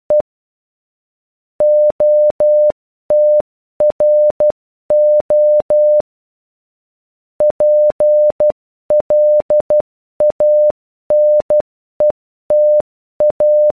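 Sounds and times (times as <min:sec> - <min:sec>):
morse code message beeps: 0:01.6 - 0:06.0, 0:07.4 - 0:13.7.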